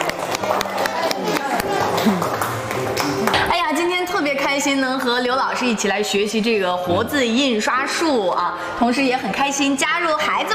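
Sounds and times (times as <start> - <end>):
children clapping applause: 0.0 - 3.6
speech: 4.6 - 10.5.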